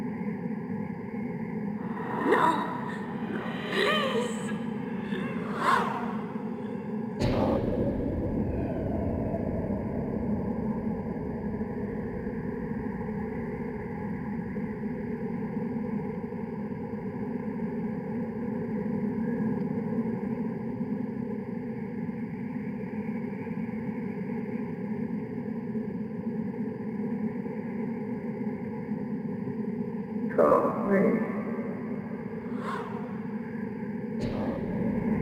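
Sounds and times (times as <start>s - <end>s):
spectral ambience: 0.0s - 35.2s.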